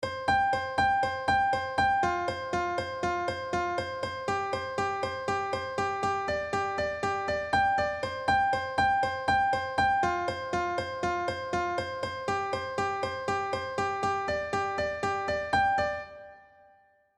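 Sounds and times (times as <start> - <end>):
piano: 0.0 - 17.0.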